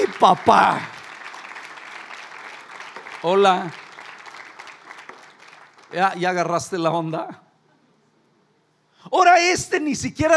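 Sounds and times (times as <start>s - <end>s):
audience applause: 0.0s - 6.2s
speech: 0.2s - 0.9s, 3.2s - 3.8s, 5.9s - 7.4s, 9.1s - 10.3s.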